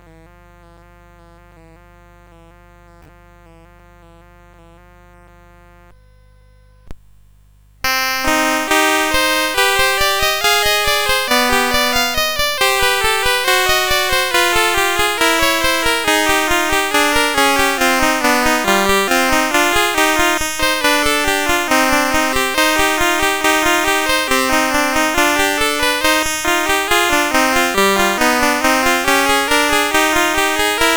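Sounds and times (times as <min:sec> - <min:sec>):
chiptune canon on a CSG8580R5 sound chip: 0:07.9 - 0:30.9.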